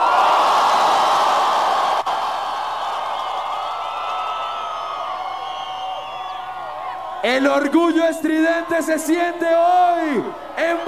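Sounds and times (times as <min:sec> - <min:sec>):
crowd shouting and cheering farewell: 0:00.0 - 0:10.8
speech: 0:07.2 - 0:10.8.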